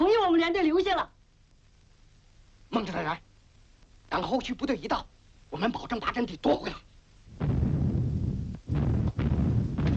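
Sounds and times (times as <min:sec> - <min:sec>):
speech: 0:00.5 - 0:01.2, 0:02.7 - 0:03.3, 0:04.1 - 0:07.5
enemy artillery shelling a mountain in a war drama: 0:07.4 - 0:09.9.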